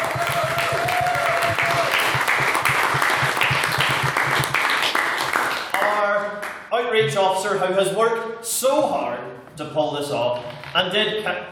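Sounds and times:
audience applause: 0:00.0 - 0:05.9
speech: 0:07.1 - 0:11.4.

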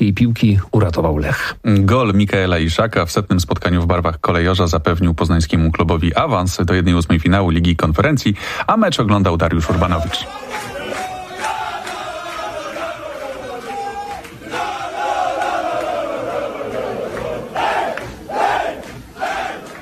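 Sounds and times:
speech: 0:00.1 - 0:10.8
football team cheering in the dressing room: 0:09.6 - 0:19.8.

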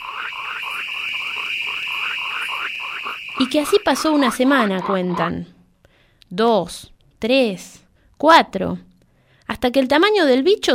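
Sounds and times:
crickets chirping: 0:00.0 - 0:05.3
speech: 0:03.4 - 0:05.6, 0:06.3 - 0:08.9, 0:09.5 - 0:10.7.

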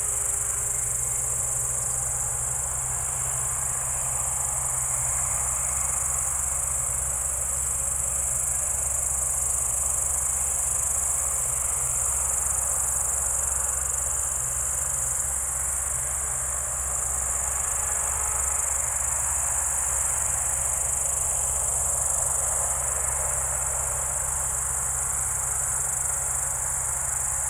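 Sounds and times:
crickets trilling: 0:00.0 - 0:27.4.

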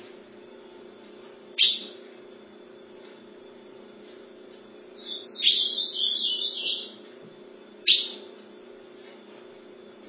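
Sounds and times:
ultramarine grosbeak singing: 0:01.6 - 0:02.0, 0:05.0 - 0:07.0, 0:07.8 - 0:08.3.

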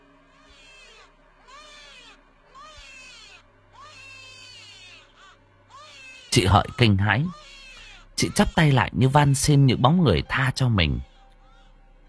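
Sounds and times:
shrill wailing cry by a riverbank: 0:00.3 - 0:08.9
speech: 0:06.3 - 0:07.4, 0:08.2 - 0:11.1.

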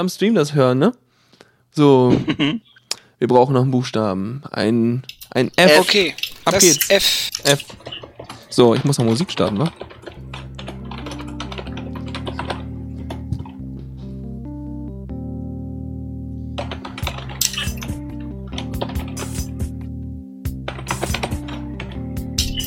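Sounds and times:
speech: 0:00.0 - 0:01.0, 0:01.7 - 0:10.0
typing on a keyboard: 0:07.4 - 0:13.5, 0:16.6 - 0:18.0, 0:18.6 - 0:19.5, 0:20.6 - 0:22.6.

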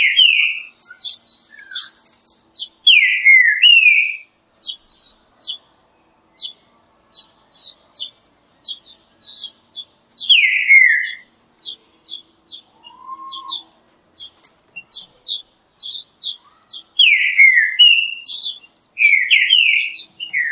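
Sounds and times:
Green-winged saltator singing a rich whistled phrase: 0:00.0 - 0:02.0, 0:02.9 - 0:04.2, 0:10.2 - 0:20.4.

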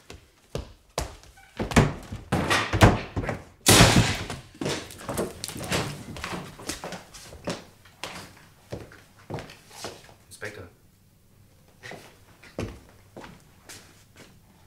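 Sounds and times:
door giving way in a loud splintering crash: 0:01.7 - 0:06.2
debris scraping, rattling and clattering: 0:03.7 - 0:06.6.

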